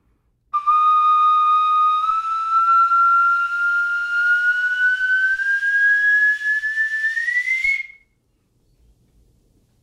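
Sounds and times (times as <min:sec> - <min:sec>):
ancient flute sounding a sliding whistling note: 0:00.5 - 0:08.2.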